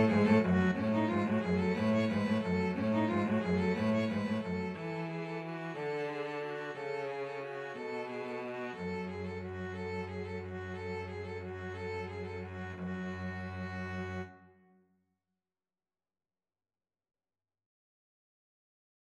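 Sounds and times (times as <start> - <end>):
string trio playing a carol: 0.0 - 14.4.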